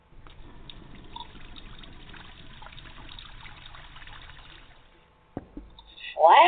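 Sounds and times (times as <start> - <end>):
water trickling from a low-pressure tap: 0.0 - 5.0.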